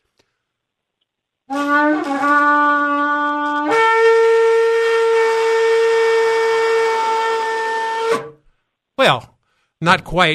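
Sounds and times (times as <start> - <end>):
shofar ram's horn blast: 1.5 - 8.5
speech: 1.7 - 2.5, 9.0 - 10.3.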